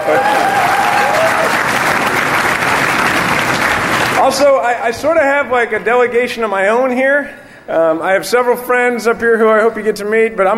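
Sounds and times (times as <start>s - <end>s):
audience applause: 0.0s - 4.6s
speech: 4.3s - 10.5s.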